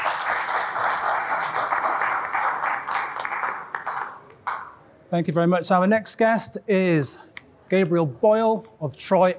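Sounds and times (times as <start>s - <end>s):
audience applause: 0.0s - 4.7s
speech: 5.1s - 9.3s.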